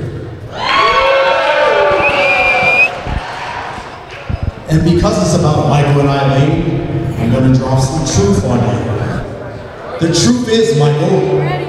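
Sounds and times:
audience cheering: 0.5s - 3.7s
speech: 4.7s - 8.9s, 10.0s - 11.6s.

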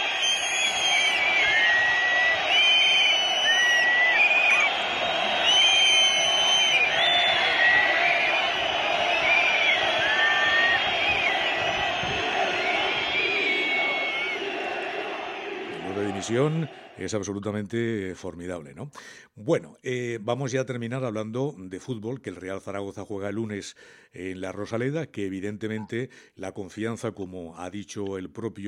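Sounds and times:
large crowd whistling: 0.0s - 16.9s
speech: 16.3s - 28.6s.

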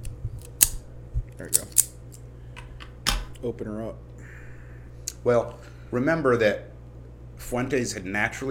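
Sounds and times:
cutter clipping the tip of a cigar: 0.4s - 2.0s
speech: 1.4s - 1.9s, 3.4s - 4.1s, 5.2s - 6.7s, 7.5s - 8.4s.

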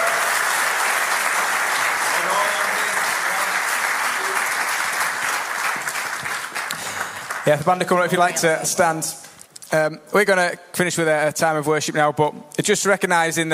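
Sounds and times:
audience applause: 0.0s - 8.6s
speech: 7.4s - 13.5s.

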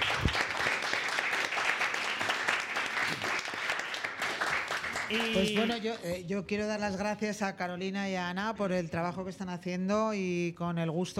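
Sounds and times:
applause: 0.0s - 6.2s
speech: 5.1s - 11.1s.

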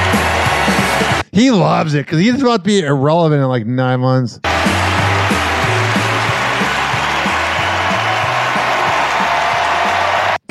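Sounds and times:
audience clapping: 0.0s - 1.2s, 4.4s - 10.4s
speech: 1.4s - 4.5s.

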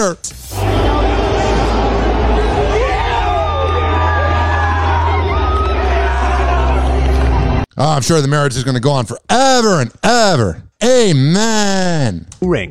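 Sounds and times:
speech: 0.0s - 0.6s, 7.8s - 12.6s
onlookers cheering: 0.5s - 7.6s.

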